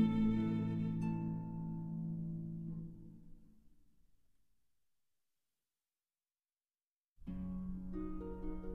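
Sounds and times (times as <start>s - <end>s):
berceuse for violin and harp: 0.0s - 3.0s, 7.3s - 8.7s.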